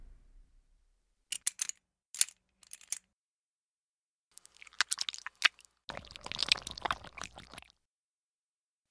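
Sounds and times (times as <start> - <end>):
ear licking with sound effects: 4.4 - 7.7.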